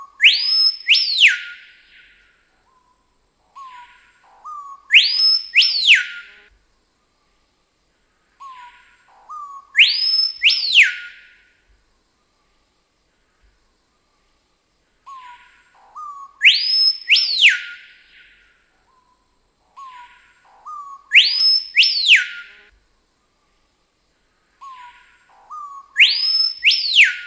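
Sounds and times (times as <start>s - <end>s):
screaming piha song of loud piercing whistles: 0.0s - 3.0s, 3.6s - 6.5s, 8.4s - 11.5s, 15.1s - 19.2s, 19.8s - 22.7s, 24.6s - 27.2s.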